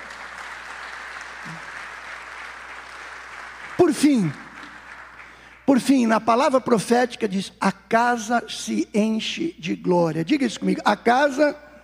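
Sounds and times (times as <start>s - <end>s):
audience applauding: 0.0s - 5.8s
speech: 1.4s - 1.7s, 3.8s - 4.4s, 5.7s - 11.6s.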